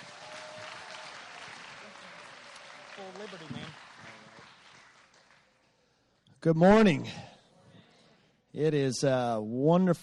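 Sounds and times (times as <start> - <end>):
morning audience applause welcoming a speaker: 0.0 - 6.2
speech: 3.0 - 4.1, 6.4 - 7.3, 8.6 - 10.0.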